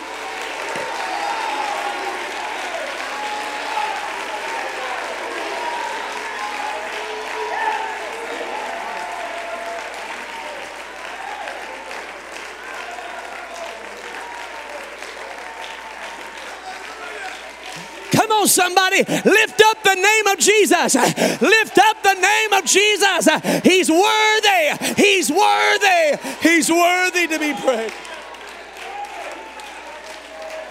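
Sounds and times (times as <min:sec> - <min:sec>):
audience clapping: 0:00.0 - 0:30.7
cheering voices: 0:00.0 - 0:30.7
speech: 0:18.5 - 0:28.0.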